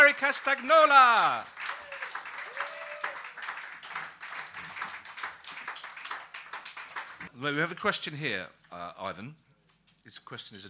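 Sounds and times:
audience applause: 0.0 - 7.3
speech: 0.1 - 1.7, 7.4 - 9.4, 10.0 - 10.6.

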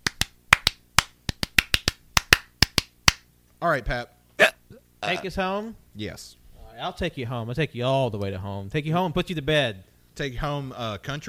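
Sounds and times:
people clapping: 0.0 - 3.2
speech: 3.6 - 11.2.

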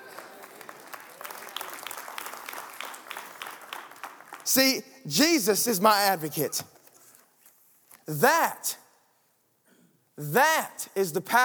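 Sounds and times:
audience clapping: 0.0 - 4.8
speech: 4.5 - 6.7, 8.1 - 8.8, 10.2 - 11.4.

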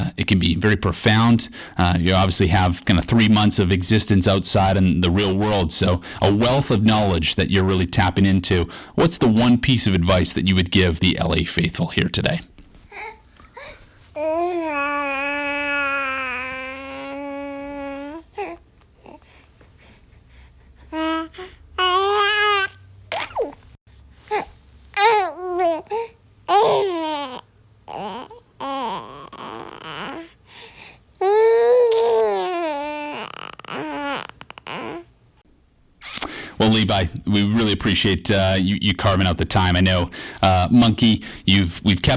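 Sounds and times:
speech: 0.2 - 13.1, 37.3 - 42.1
infant babbling, cooing, squealing and gurgling: 14.2 - 19.2, 20.9 - 22.7, 24.3 - 30.4, 31.2 - 35.1.

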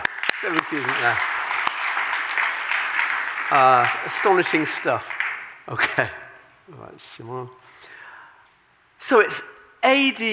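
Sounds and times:
crowd hand clapping: 0.0 - 6.0
speech: 0.4 - 1.3, 3.5 - 7.8, 9.0 - 10.3.

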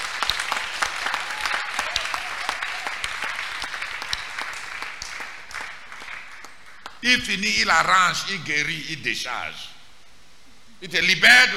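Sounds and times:
audience applause: 0.0 - 7.0
speech: 7.0 - 9.7, 10.8 - 11.5.

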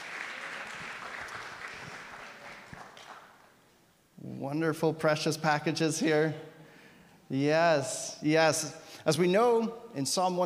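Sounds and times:
congregation applause at a Sunday church service welcoming a family: 0.0 - 3.6
speech: 4.4 - 6.5, 7.3 - 10.4.

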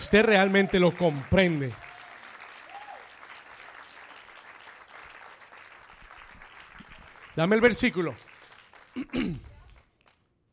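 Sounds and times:
audience applause: 0.0 - 10.2
speech: 0.1 - 1.9, 7.4 - 8.3, 9.0 - 9.5.

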